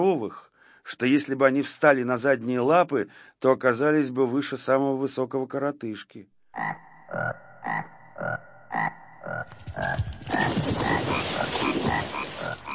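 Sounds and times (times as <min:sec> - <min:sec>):
speech: 0:00.0 - 0:12.7
frogs croaking loudly: 0:06.5 - 0:12.7.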